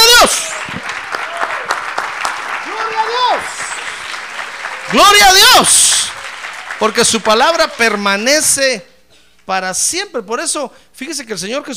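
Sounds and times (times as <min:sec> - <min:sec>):
audience applauding: 0:00.0 - 0:08.6
speech: 0:04.9 - 0:06.2, 0:06.8 - 0:08.9, 0:09.5 - 0:11.7.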